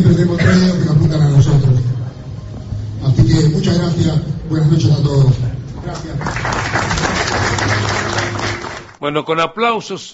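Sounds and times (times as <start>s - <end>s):
speech: 0.0s - 1.9s, 3.0s - 7.7s, 9.0s - 10.1s
audience applause at a cultural award ceremony: 6.0s - 9.0s.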